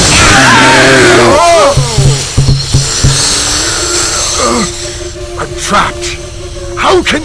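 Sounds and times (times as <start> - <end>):
suction from an air cleansing system: 0.0 - 5.2.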